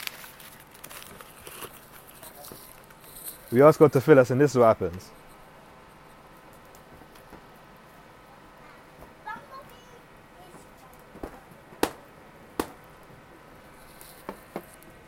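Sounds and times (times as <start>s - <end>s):
paper being scrunched up into a glass: 0.0s - 3.6s
speech: 3.5s - 5.2s.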